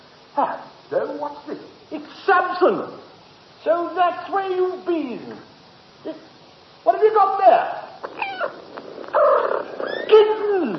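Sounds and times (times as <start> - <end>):
speech: 0.4 - 3.0, 3.6 - 8.6
cat with newborn kittens: 8.0 - 10.7.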